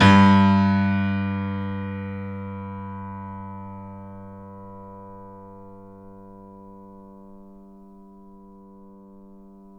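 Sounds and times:
grand piano note: 0.0s - 7.1s.

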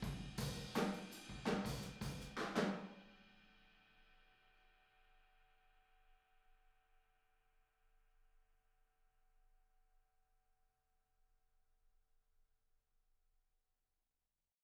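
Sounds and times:
boogaloo drum outro in stereo room: 0.0s - 3.1s.

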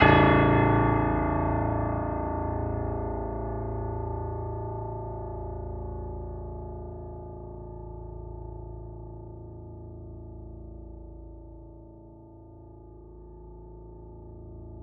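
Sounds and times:
classical piano: 0.0s - 6.1s.

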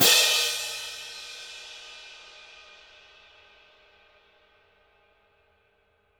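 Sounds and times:
orchestral cymbal: 0.0s - 4.0s.

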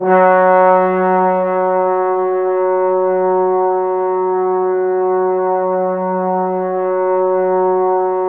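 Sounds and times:
trombones playing F#4: 0.0s - 8.2s.

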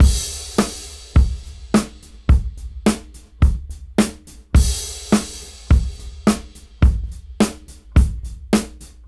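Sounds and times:
straight beat: 0.0s - 9.0s.

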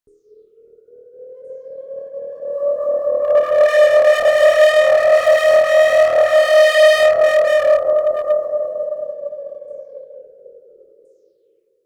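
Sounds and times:
ghostly D seventh synth pad chord: 3.2s - 8.9s.

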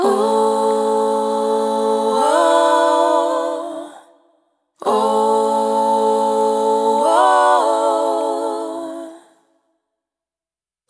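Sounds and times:
multi-voice vocal loops: 0.0s - 4.0s, 4.8s - 9.1s.

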